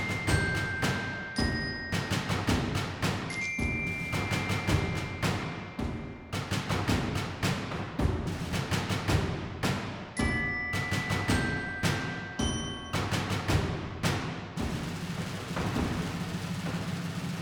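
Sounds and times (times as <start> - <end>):
percussion: 0.0 - 17.4.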